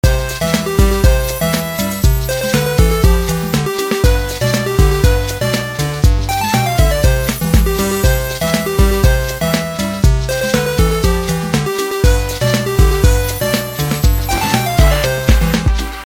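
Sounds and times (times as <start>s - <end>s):
free spin melody: 0.0s - 16.0s.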